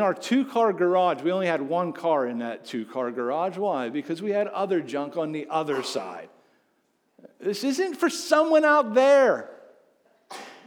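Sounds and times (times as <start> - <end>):
speech: 0.0 - 6.4, 7.4 - 9.6, 10.3 - 10.5
sneeze: 5.7 - 6.2, 10.3 - 10.6.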